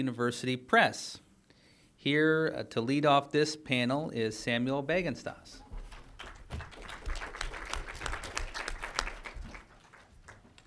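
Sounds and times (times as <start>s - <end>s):
speech: 0.0s - 1.2s, 2.0s - 5.6s
audience applause: 6.2s - 10.6s.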